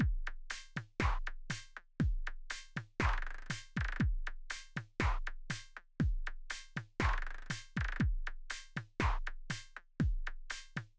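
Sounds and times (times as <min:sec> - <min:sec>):
drums: 0:00.0 - 0:10.9.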